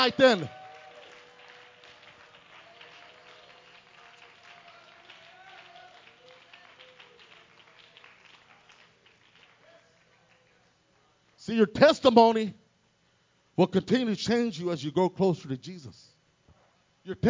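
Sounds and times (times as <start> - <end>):
speech: 0.0 - 0.6, 11.5 - 12.6, 13.6 - 16.1, 17.0 - 17.2
audience hand clapping: 0.0 - 11.4.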